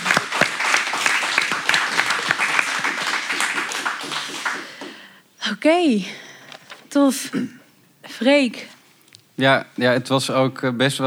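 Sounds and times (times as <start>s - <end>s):
crowd applauding: 0.0s - 5.2s
speech: 5.6s - 6.2s, 7.0s - 7.6s, 8.2s - 8.8s, 9.4s - 11.0s.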